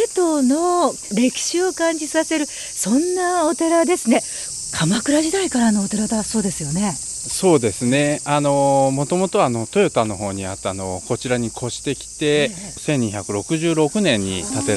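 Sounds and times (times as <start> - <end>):
cicadas droning at Mantokuji temple in Seto: 0.0 - 14.7
speech: 0.0 - 14.7.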